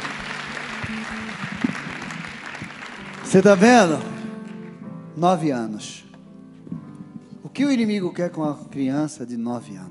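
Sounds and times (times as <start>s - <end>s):
audience applauding: 0.0s - 4.8s
speech: 0.9s - 1.7s, 3.3s - 4.1s, 5.2s - 6.1s, 7.6s - 9.8s.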